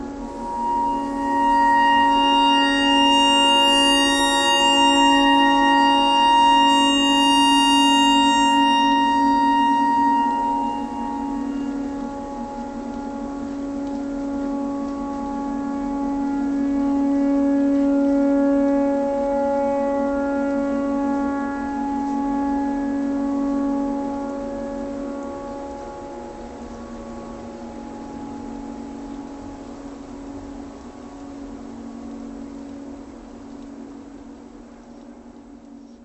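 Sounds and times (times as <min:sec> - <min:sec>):
clarinet notes in E pentatonic: 0:00.0 - 0:26.3
tornado siren: 0:00.0 - 0:30.4.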